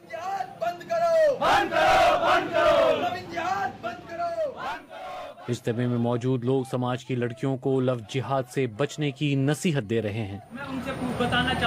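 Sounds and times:
crowd chanting slogans at a Hindu nationalist rally in Saharanpur: 1.4 - 3.8, 4.4 - 5.9
speech: 5.5 - 11.6.

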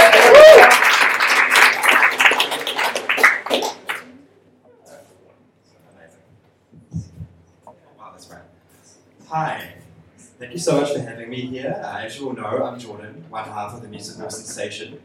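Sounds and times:
audience applause and cheering welcoming guests: 0.0 - 4.0
speech: 10.6 - 15.0.

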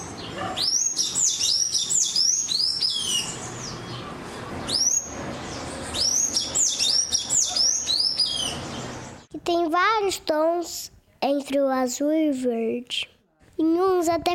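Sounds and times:
sayaca tanager singing squeaky slurred chirps: 0.0 - 3.8, 5.9 - 9.3
speech: 10.1 - 14.3.

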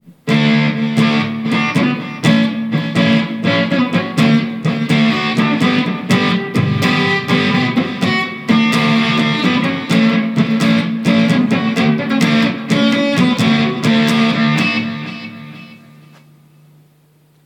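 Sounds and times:
chords being played: 0.3 - 16.2.

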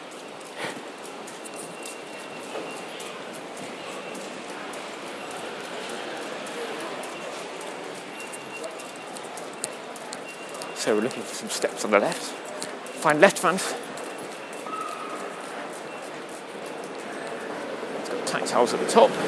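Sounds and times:
footsteps in the Jubilee Line ticket hall: 0.0 - 18.0
crowd noise in the Jubilee Line ticket hall of a London Underground station: 0.0 - 19.2
speech: 10.8 - 12.4, 13.0 - 13.9, 18.5 - 19.2.

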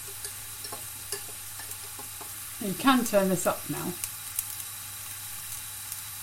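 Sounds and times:
water sizzling in hot pan: 0.0 - 6.2
speech: 2.6 - 4.1
pops and crackles: 4.0 - 6.1.

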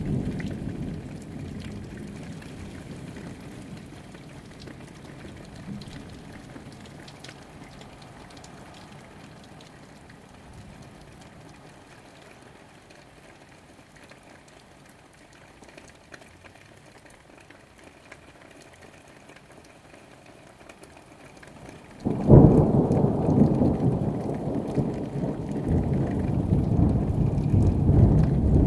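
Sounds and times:
thunderstorm in January: 0.0 - 9.7, 22.0 - 28.6.

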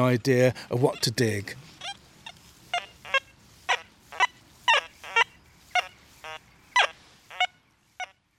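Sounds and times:
speech: 0.0 - 1.6
metal detector beeps: 1.8 - 8.1.

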